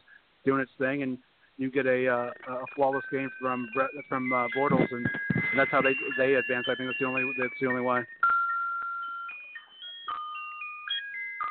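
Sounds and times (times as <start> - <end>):
speech: 0.4 - 8.2
little clock chiming Christmas music in dining room: 2.2 - 11.4.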